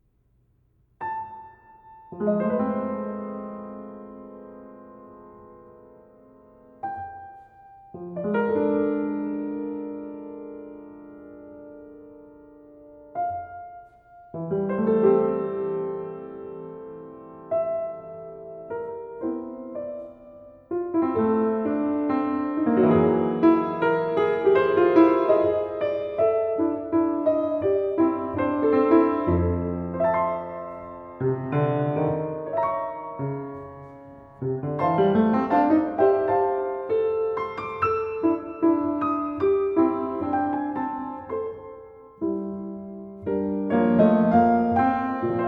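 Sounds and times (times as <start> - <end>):
piano prelude: 1.0 - 45.4.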